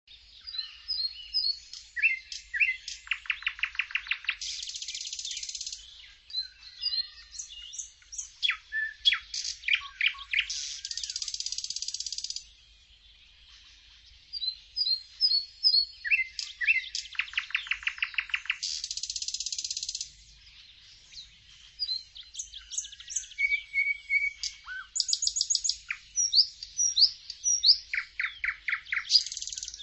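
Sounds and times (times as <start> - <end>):
songbird singing: 0.0 - 29.8.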